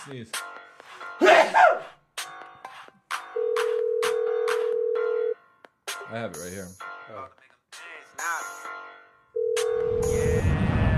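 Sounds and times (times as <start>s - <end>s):
speech: 0.0s - 0.5s, 1.2s - 2.0s, 6.1s - 8.4s
ringback tone on an outgoing phone call: 3.4s - 5.4s, 9.4s - 10.4s.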